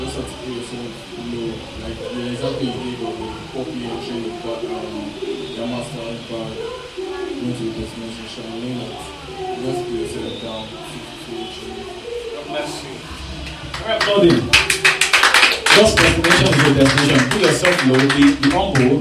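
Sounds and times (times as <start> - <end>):
voices murmuring: 0.0 - 18.9
crowd applauding: 13.1 - 18.9.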